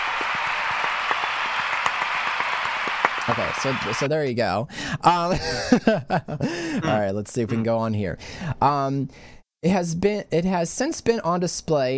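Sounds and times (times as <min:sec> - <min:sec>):
round of applause: 0:00.0 - 0:04.1
speech: 0:03.3 - 0:11.9.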